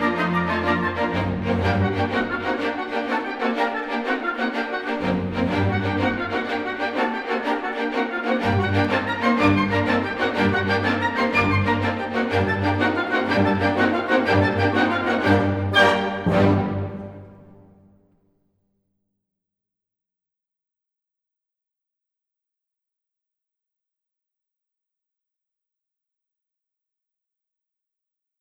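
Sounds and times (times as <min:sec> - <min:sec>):
continuous grand allegro exam music: 0:00.0 - 0:17.8.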